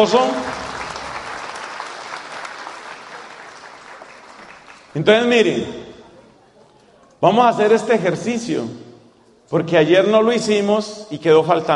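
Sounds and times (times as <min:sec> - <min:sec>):
speech: 0:00.0 - 0:00.5, 0:05.0 - 0:05.8, 0:07.2 - 0:08.8, 0:09.5 - 0:11.7
audience applause: 0:00.0 - 0:05.4.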